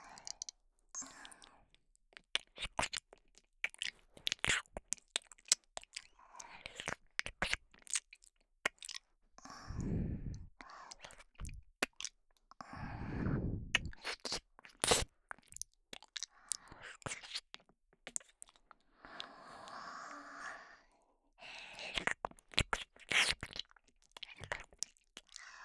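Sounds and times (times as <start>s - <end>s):
ASMR ear licking: 2.1s - 12.2s, 13.0s - 18.7s, 21.7s - 25.4s.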